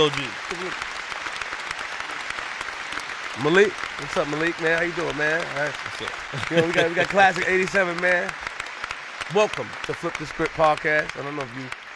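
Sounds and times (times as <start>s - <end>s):
speech: 0.0s - 0.9s, 3.4s - 8.4s, 9.3s - 11.8s
audience applause: 0.0s - 11.9s
laughter: 4.3s - 8.1s.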